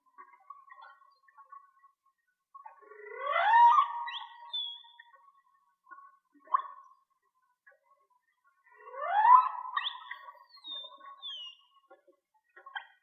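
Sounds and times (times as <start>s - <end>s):
whale song: 2.8s - 5.4s, 8.6s - 11.8s.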